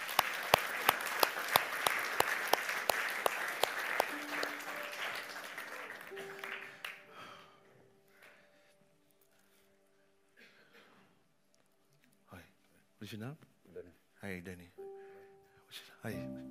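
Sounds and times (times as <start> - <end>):
audience applause: 0.0 - 7.1
speech: 13.1 - 13.5, 14.2 - 14.8, 16.0 - 16.4.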